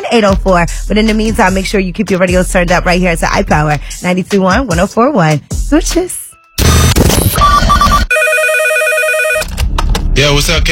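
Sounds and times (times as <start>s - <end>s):
speech: 0.1s - 7.1s, 10.2s - 10.6s
telephone ringing: 7.4s - 9.5s.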